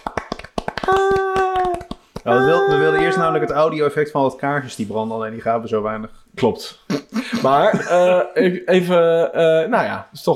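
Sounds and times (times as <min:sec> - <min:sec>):
hand clapping as makeshift applause: 0:00.0 - 0:02.6
speech: 0:02.2 - 0:10.3
laughter: 0:06.9 - 0:08.5.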